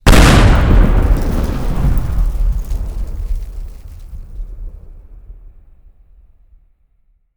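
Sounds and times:
explosion: 0:00.0 - 0:05.8.

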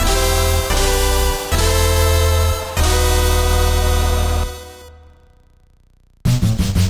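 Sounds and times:
safehouse music intro: 0:00.0 - 0:05.4.

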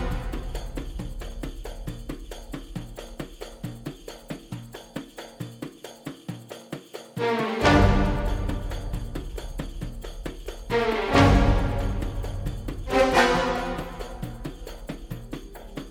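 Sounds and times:
suspense music loop: 0:00.0 - 0:03.0, 0:07.2 - 0:15.8.

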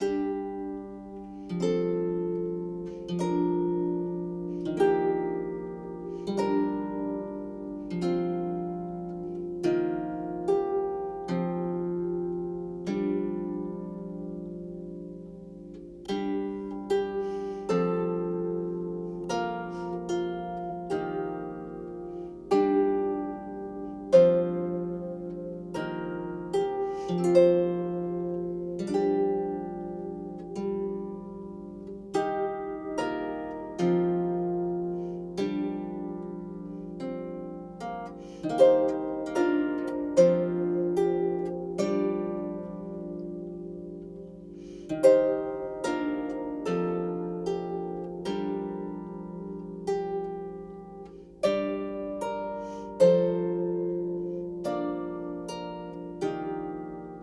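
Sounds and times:
lute playing: 0:00.0 - 0:57.2.

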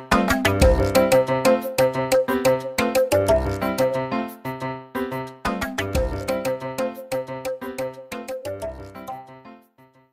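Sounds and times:
multiplayer character selection music: 0:00.1 - 0:04.2, 0:05.5 - 0:09.4.

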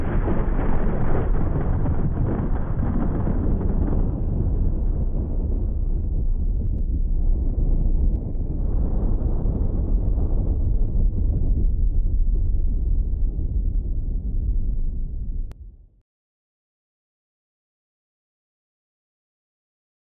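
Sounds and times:
ambient galleon exterior: 0:00.0 - 0:16.0.

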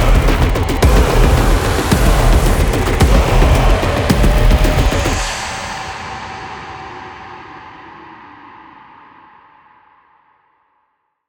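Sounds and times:
main ambient music: 0:00.0 - 0:07.1.

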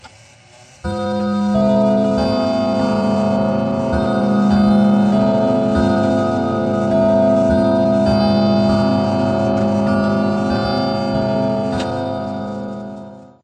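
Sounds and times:
clock chime: 0:00.8 - 0:13.4.

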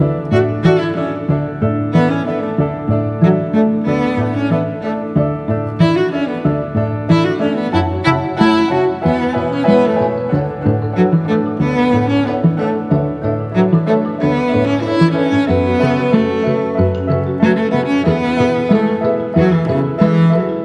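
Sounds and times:
dreamy music: 0:00.0 - 0:20.6.

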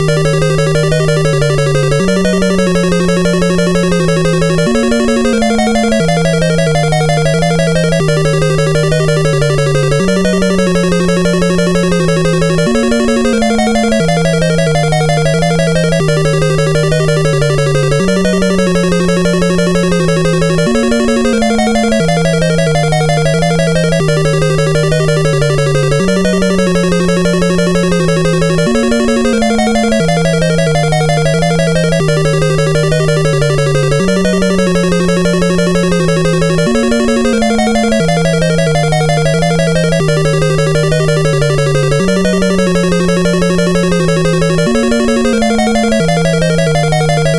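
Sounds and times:
background game music: 0:00.0 - 0:47.3.

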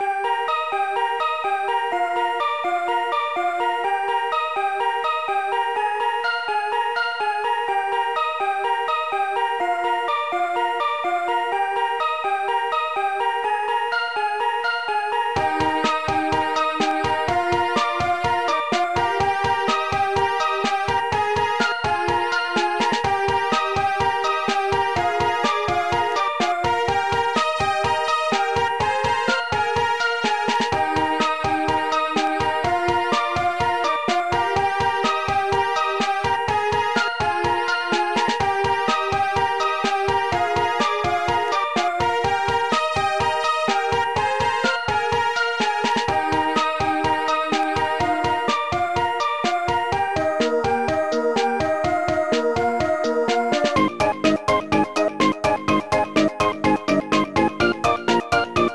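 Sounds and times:
level background music: 0:00.0 - 0:58.7.

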